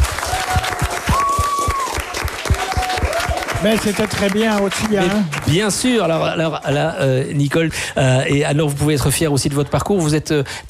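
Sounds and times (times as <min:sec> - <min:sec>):
audience applause: 0:00.0 - 0:06.2
speech: 0:03.6 - 0:10.6.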